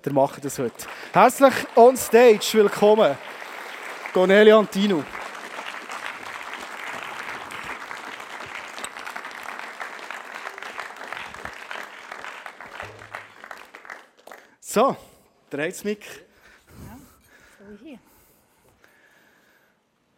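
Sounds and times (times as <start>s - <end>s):
speech: 0.0s - 3.4s, 4.1s - 5.2s, 14.8s - 16.3s
audience applause: 0.0s - 14.6s.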